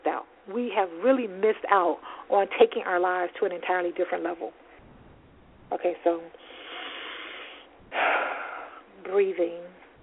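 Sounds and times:
speech: 0.5 - 4.6, 5.7 - 6.6, 9.1 - 9.7
person breathing between paragraphs of reading aloud: 6.4 - 8.9.

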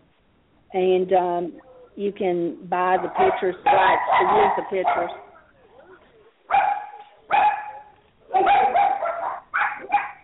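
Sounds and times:
speech: 0.7 - 5.2
Australian Shepherd dogs barking: 2.8 - 10.2.

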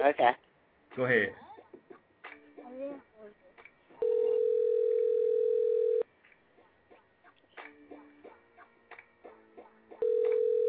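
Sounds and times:
speech: 0.0 - 0.4, 1.0 - 1.4
outgoing phone call ringback tone: 4.0 - 6.0, 10.0 - 10.6.

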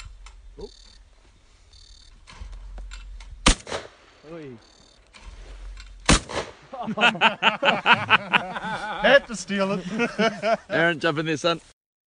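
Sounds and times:
shotgun shots while shooting clay targets: 3.4 - 4.3, 6.0 - 6.7
speech: 4.3 - 4.8, 6.8 - 11.7
laughter: 6.7 - 10.8.

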